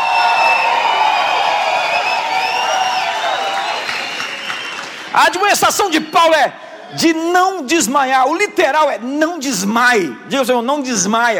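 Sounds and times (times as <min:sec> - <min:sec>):
audience shouting for joy: 0:00.0 - 0:06.0
speech: 0:05.3 - 0:11.3.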